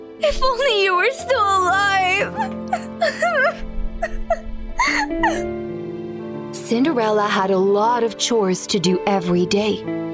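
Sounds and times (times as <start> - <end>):
soft sustained music: 0.0 - 10.1
speech: 0.2 - 5.6, 6.7 - 10.1
young girl sobbing while grieving her dead mother in a dusty loft: 1.5 - 5.6.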